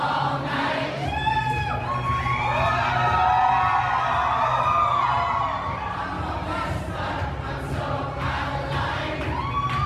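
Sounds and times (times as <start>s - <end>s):
large crowd singing an anthem in a subway station: 0.0s - 1.1s, 5.4s - 9.7s
dense steady roar: 0.0s - 9.8s.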